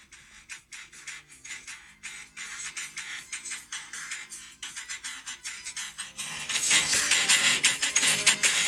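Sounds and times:
Minecraft door clicks arranged to mimic a rap vocal: 0.0s - 8.6s.

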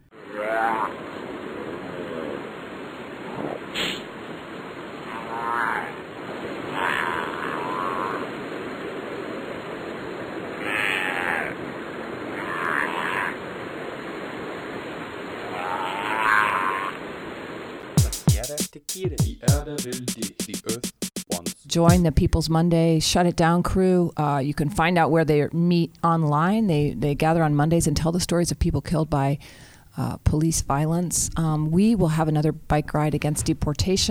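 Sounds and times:
Hawaiian monk seal vocalizations: 0.0s - 4.1s, 5.0s - 8.6s, 10.6s - 13.5s, 15.4s - 17.1s
speech: 19.0s - 20.6s, 21.7s - 34.0s.

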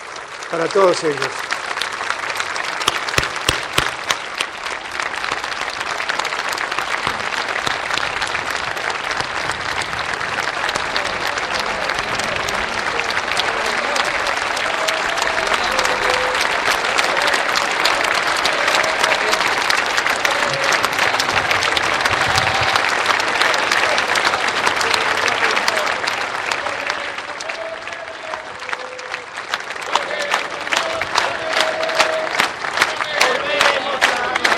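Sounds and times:
large crowd applause: 0.0s - 34.5s
speech: 0.5s - 1.5s.

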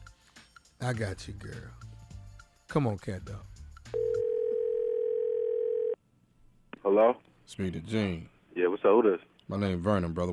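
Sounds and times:
speech: 0.8s - 1.9s, 2.7s - 4.0s, 6.8s - 10.3s
telephone dial tone before prank call: 4.0s - 6.0s.

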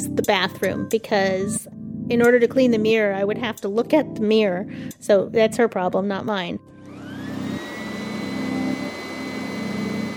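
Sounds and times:
speech: 0.1s - 6.7s
vacuum cleaner running: 6.8s - 10.1s.

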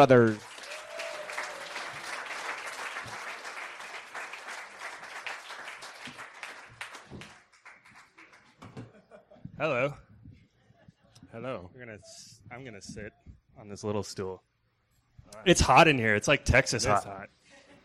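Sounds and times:
speech: 0.0s - 0.5s, 9.6s - 10.0s, 11.4s - 14.5s, 15.3s - 17.4s
audience applause at a live storytelling event in Denver: 0.0s - 8.9s.

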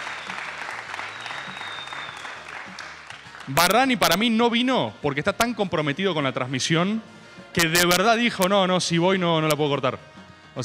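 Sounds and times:
audience applause: 0.0s - 3.7s
speech: 3.5s - 10.6s.

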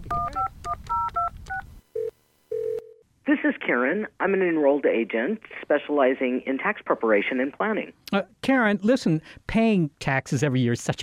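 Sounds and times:
cell phone keypad dual-tone beeps: 0.1s - 3.0s
speech: 3.7s - 11.0s.

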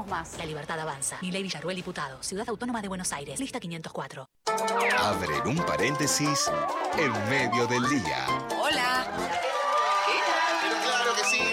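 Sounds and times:
speech: 0.0s - 9.4s
crowd cheering and whooping: 5.8s - 11.5s
recorded crowd applause: 6.7s - 11.5s.

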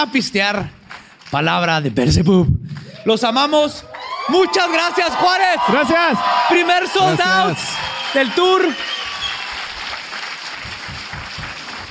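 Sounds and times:
speech: 0.0s - 8.9s
live audience applause: 3.9s - 11.9s.

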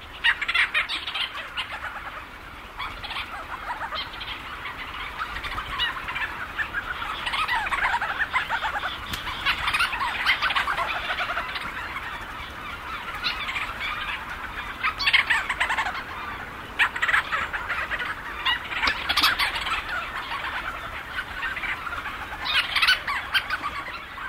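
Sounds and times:
thousands of Leach's storm petrels calling at night: 0.0s - 24.2s.

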